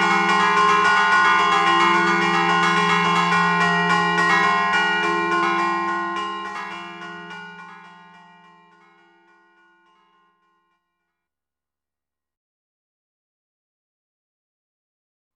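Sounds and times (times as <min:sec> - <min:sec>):
bells ringing: 0:00.0 - 0:10.5.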